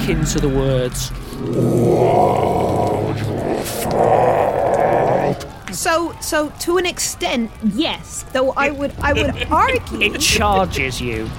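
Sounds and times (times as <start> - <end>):
speech: 0.1 - 4.4, 5.3 - 11.3
person voicing a monster's roar: 1.4 - 5.5.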